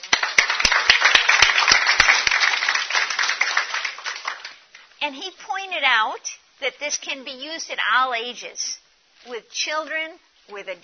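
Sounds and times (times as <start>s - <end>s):
audience applause: 0.0s - 4.6s
speech: 5.0s - 10.8s.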